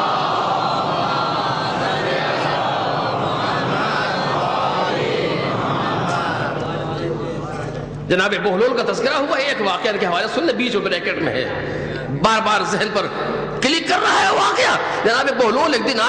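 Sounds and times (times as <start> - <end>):
large audience reciting salawat in unison: 0.0 - 7.7
speech: 8.1 - 16.0.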